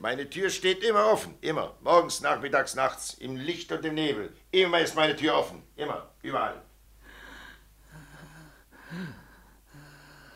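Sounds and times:
speech: 0.0s - 6.7s
rattling, wheezing lungs breathing: 7.0s - 10.3s
strained gasp: 7.0s - 10.3s.

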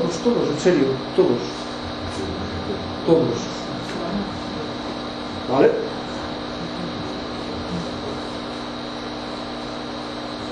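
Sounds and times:
electric fan blowing for seed cleaning: 0.0s - 10.5s
speech: 0.1s - 4.4s, 5.5s - 6.0s.

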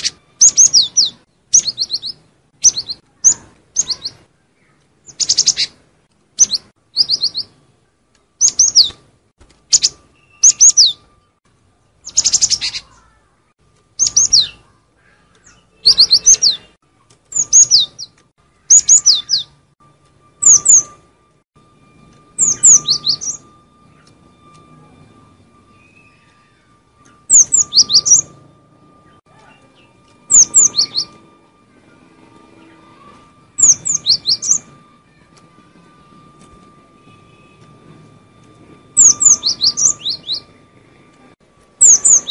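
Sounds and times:
lovebird calls: 0.0s - 5.8s, 6.4s - 9.0s, 9.7s - 13.2s, 13.9s - 19.6s, 20.3s - 21.0s, 22.3s - 31.2s, 32.6s - 35.2s, 39.0s - 40.7s, 41.8s - 42.3s.

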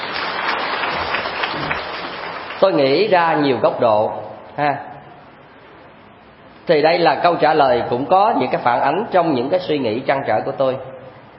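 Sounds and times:
audience applause at a talk: 0.0s - 2.8s
speech: 2.6s - 4.9s, 6.7s - 10.9s.

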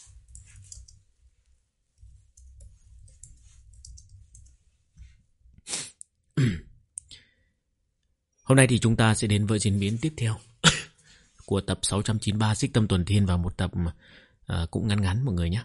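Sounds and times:
coughing and throat clearing: 6.4s - 6.8s, 10.6s - 11.0s
speech: 8.5s - 10.5s, 11.5s - 15.6s.

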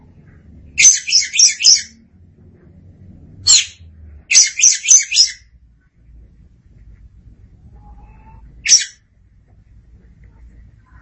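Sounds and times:
faint low hum: 0.0s - 11.0s
Oriental magpie-robin song: 0.7s - 2.0s, 3.5s - 5.5s, 8.0s - 9.0s.

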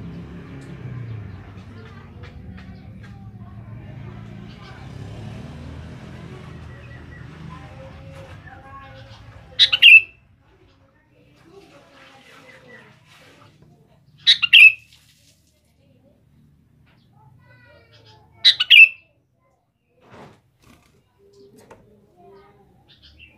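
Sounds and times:
sooty-headed bulbul singing chortling phrases: 6.5s - 10.3s, 14.1s - 14.9s, 17.9s - 19.1s
faint twittering of other birds: 6.6s - 10.2s, 14.1s - 14.8s, 17.9s - 19.0s.

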